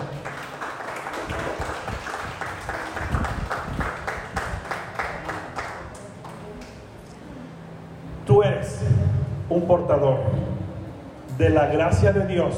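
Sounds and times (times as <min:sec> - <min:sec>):
audience applauding: 0:00.0 - 0:06.8
speech: 0:08.6 - 0:10.5, 0:11.4 - 0:12.5.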